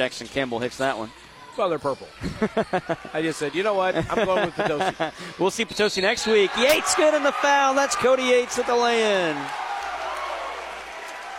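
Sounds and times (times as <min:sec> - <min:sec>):
speech: 0:00.0 - 0:09.6
laughter: 0:02.2 - 0:03.3, 0:03.9 - 0:05.4
basketball crowd cheering: 0:06.1 - 0:11.3.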